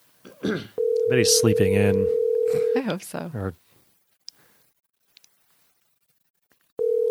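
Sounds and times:
speech: 0:00.4 - 0:03.6
faint telephone clicks: 0:05.1 - 0:05.4.

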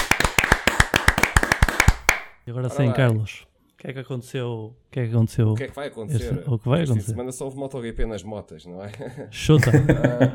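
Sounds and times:
hand clapping: 0:00.0 - 0:02.4
speech: 0:02.5 - 0:10.3
laughter: 0:08.9 - 0:10.3.

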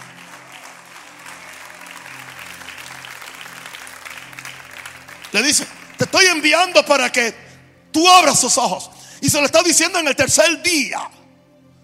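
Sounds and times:
audience applause: 0:00.0 - 0:06.6
speech: 0:05.3 - 0:11.2.

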